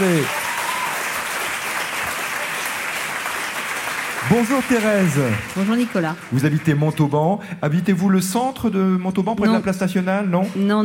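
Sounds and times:
speech: 0.0 - 0.4, 4.2 - 10.8
audience applause: 0.0 - 7.4.

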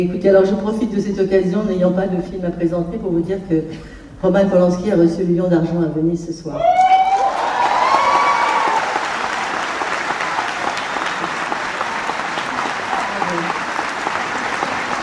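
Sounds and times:
speech: 0.0 - 6.8
scattered cheers: 6.6 - 15.0
audience clapping for Roman Polanski at Deauville: 7.1 - 15.0.

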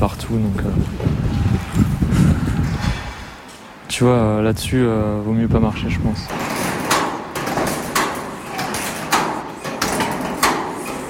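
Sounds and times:
speech: 0.0 - 2.9, 3.9 - 6.6
wind rushing: 0.1 - 6.3
loose sheet metal plates rattling in the wind: 6.2 - 11.0.

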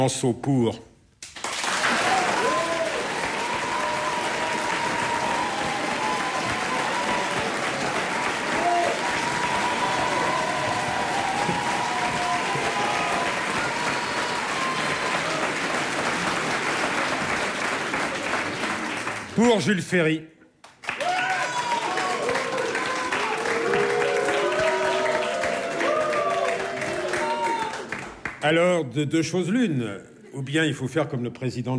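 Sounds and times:
speech: 0.0 - 0.9, 19.4 - 20.4, 28.4 - 31.7
audience applause: 1.4 - 19.7, 20.6 - 28.5
faint crowd voices and cheers: 1.8 - 16.6, 20.9 - 28.0.

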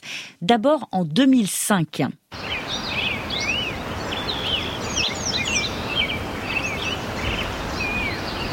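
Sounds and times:
speech: 0.4 - 2.4
birds singing in California: 2.4 - 8.5
river flowing: 2.4 - 8.5.

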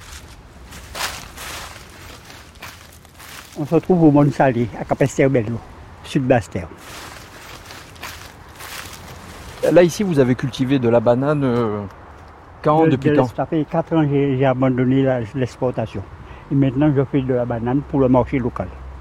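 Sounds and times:
footsteps crunching through dry leaves: 0.0 - 4.7, 6.8 - 10.1
speech: 3.6 - 6.9, 9.7 - 12.0, 12.6 - 18.8.

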